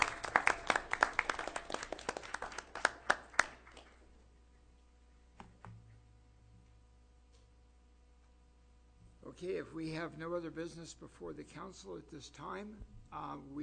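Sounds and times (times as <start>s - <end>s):
audience applause at a town council meeting welcoming a new police officer: 0.0s - 4.0s
speech: 9.4s - 13.6s.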